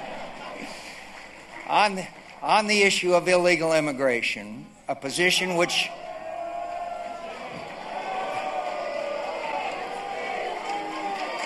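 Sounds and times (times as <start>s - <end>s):
crowd booing a speech: 0.0s - 1.2s, 5.6s - 11.4s
speech: 1.7s - 6.0s.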